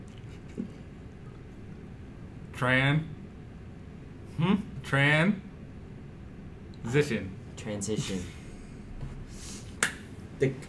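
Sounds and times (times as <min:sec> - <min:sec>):
speech: 0:02.6 - 0:03.2, 0:04.4 - 0:05.4, 0:06.8 - 0:08.4, 0:10.4 - 0:10.6
single hand clap as transition: 0:09.8 - 0:10.1.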